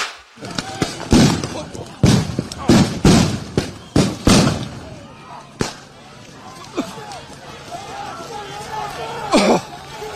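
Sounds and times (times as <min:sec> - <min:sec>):
rubber bullets and gas canisters fired: 0:00.0 - 0:04.7
protest crowd noise: 0:00.0 - 0:10.1.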